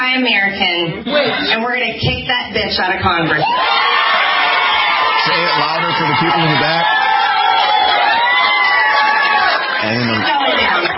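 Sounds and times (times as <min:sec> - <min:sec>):
speech: 0:00.2 - 0:04.2, 0:05.2 - 0:07.1, 0:09.8 - 0:10.9
raucous crowd applause and cheering: 0:03.4 - 0:10.9.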